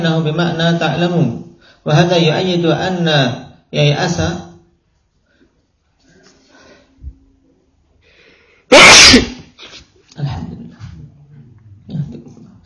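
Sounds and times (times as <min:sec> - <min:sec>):
speech: 0:00.0 - 0:04.5, 0:08.7 - 0:09.4
person sneezing: 0:08.7 - 0:09.9.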